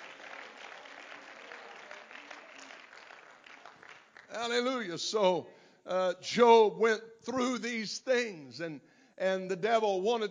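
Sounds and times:
audience clapping hands: 0.0 - 5.0
speech: 4.4 - 10.2.

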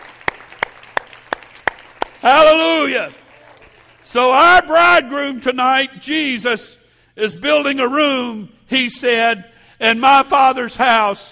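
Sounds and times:
audience clapping hands in unison rhythm: 0.0 - 4.4
speech: 2.2 - 3.2, 4.1 - 11.3.

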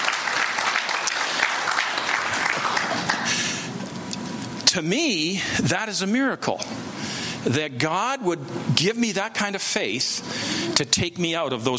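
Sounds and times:
clapping: 0.0 - 3.4
speech: 4.7 - 11.7.

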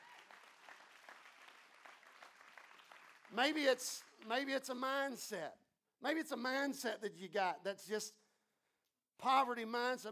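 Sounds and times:
audience applause: 0.0 - 4.3
speech: 3.3 - 8.2, 9.2 - 10.1.

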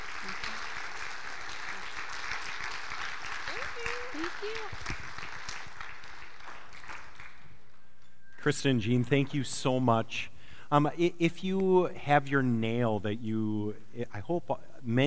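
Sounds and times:
audience applause: 0.0 - 7.5
speech: 4.4 - 5.0, 8.4 - 15.0.

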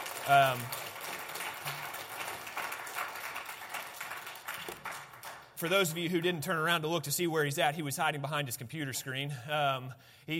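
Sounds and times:
audience applause: 0.0 - 5.6
speech: 0.2 - 0.8, 5.6 - 10.3.

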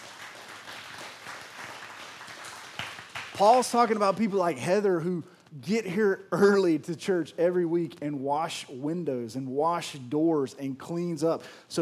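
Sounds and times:
audience applauding: 0.0 - 4.0
speech: 3.4 - 11.7.

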